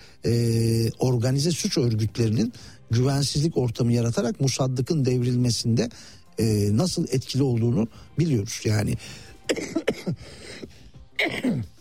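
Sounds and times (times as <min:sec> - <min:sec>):
speech: 0:00.2 - 0:11.7
person coughing and clearing throat: 0:09.5 - 0:11.7.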